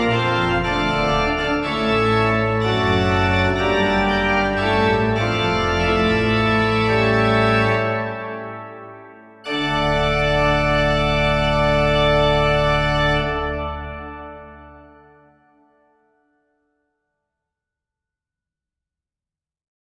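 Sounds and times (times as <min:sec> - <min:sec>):
Reis organ mixture stops: 0:00.0 - 0:15.5.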